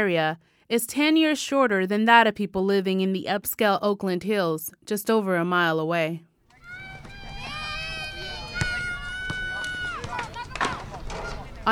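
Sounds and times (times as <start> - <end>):
speech: 0.0 - 6.3
children running and squealing at a playground: 6.5 - 11.5.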